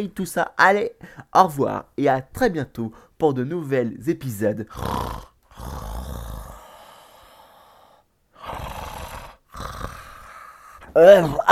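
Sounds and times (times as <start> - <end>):
speech: 0.0 - 5.8, 11.0 - 11.5
sleeping person snoring quietly: 4.7 - 11.5.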